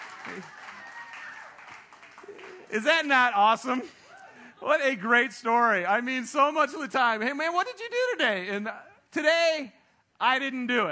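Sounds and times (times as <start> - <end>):
women in audience clapping: 0.0 - 3.2
speech: 0.3 - 0.6, 2.7 - 4.0, 4.6 - 10.9.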